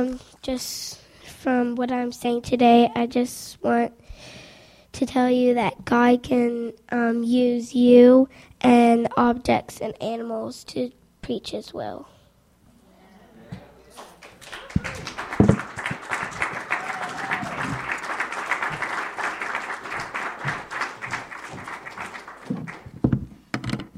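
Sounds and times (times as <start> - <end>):
speech: 0.0 - 4.4, 5.0 - 12.1
audience hand clapping: 13.9 - 23.1.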